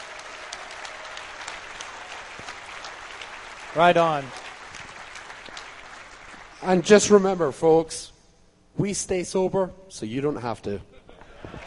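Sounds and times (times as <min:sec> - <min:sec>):
audience applause for the staff at the DEF CON 13 hacker convention: 0:00.0 - 0:06.9, 0:11.4 - 0:11.6
speech: 0:03.8 - 0:04.4, 0:06.6 - 0:08.1, 0:08.8 - 0:10.9.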